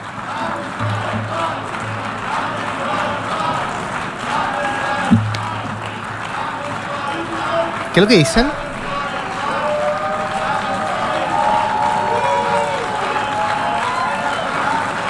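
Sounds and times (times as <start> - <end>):
large crowd applauding: 0.0 - 15.0
overlapping voices: 0.0 - 15.0
speech: 8.0 - 8.6.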